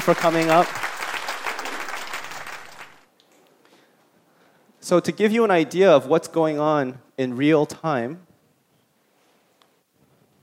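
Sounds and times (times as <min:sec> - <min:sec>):
speech: 0:00.0 - 0:00.9, 0:04.9 - 0:08.3
audience applause: 0:00.0 - 0:03.1.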